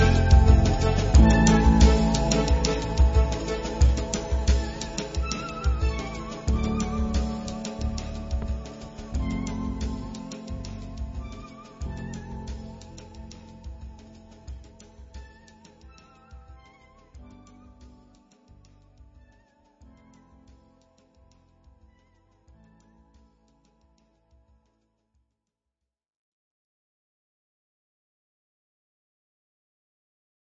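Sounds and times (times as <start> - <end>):
90 bpm lofi beat: 0.0 - 23.4.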